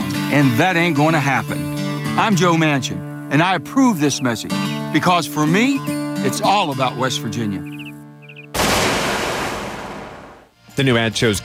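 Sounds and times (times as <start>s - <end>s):
speech: 0.4s - 7.8s, 10.8s - 11.4s
shotgun blast fired at an anti-Obamacare lawsuit document: 8.5s - 10.5s.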